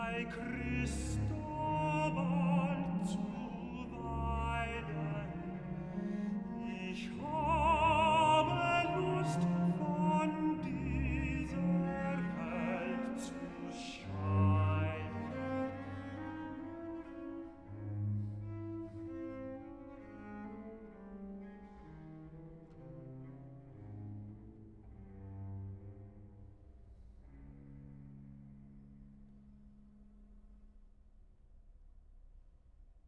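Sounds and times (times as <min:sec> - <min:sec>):
tenor singing cantata recitative: 0:00.0 - 0:16.6.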